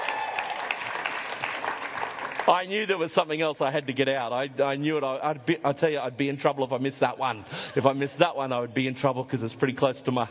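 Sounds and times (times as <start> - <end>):
audience applause for a congratulated couple: 0.0 - 3.0
speech: 2.5 - 10.2.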